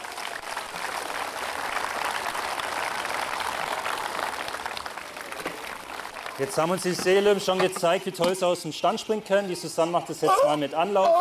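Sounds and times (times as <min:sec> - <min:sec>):
crowd clapping: 0:00.0 - 0:07.6
speech: 0:06.4 - 0:11.1.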